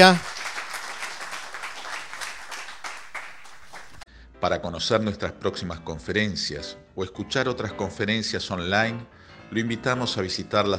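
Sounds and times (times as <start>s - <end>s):
speech: 0.0s - 0.2s, 4.4s - 10.7s
audience applause: 0.0s - 4.0s.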